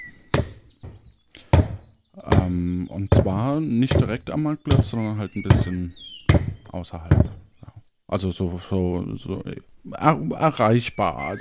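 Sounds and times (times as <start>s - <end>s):
hammering: 0.3s - 7.4s
speech: 2.5s - 6.1s, 6.8s - 7.4s, 8.1s - 11.3s.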